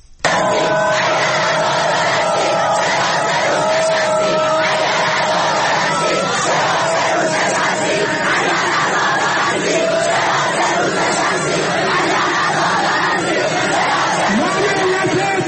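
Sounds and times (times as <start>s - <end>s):
protesting students chanting slogans at Beheshti University rally: 0.2s - 15.4s
protesting students shouting at Beheshti University rally: 0.2s - 15.4s.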